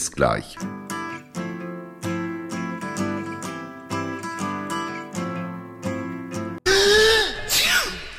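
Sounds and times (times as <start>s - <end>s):
speech: 0.1s - 0.8s
steady strummed chord-based music: 0.5s - 6.6s
loud breathy drawn-out sneeze: 6.7s - 8.1s.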